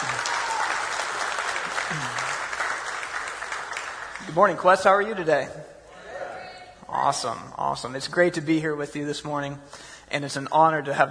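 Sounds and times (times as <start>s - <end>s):
audience at a church service applauding to welcome a speaker: 0.0s - 4.6s
speech: 4.3s - 5.7s, 7.0s - 11.0s.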